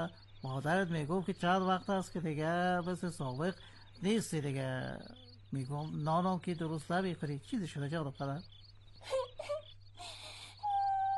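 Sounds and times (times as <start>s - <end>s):
speech: 0.0s - 9.6s
child crying and wailing: 9.0s - 11.1s.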